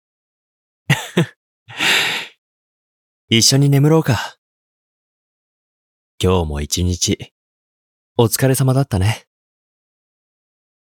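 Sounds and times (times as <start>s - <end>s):
speech: 1.2s - 2.0s, 3.3s - 4.4s, 6.2s - 7.4s, 8.2s - 9.3s
person yawning: 1.7s - 2.3s.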